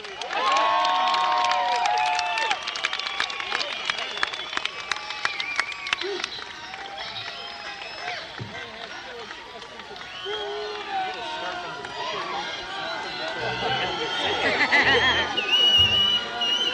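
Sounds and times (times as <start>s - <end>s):
audience applauding for band: 0.0s - 16.7s
crowd whoops and shouts: 0.0s - 16.7s
laughter: 3.4s - 16.7s.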